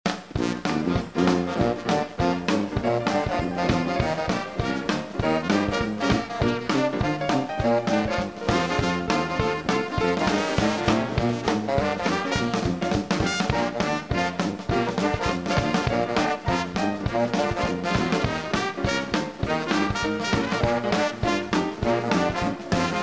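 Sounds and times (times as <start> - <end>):
Cajun music: 0.1 - 23.0.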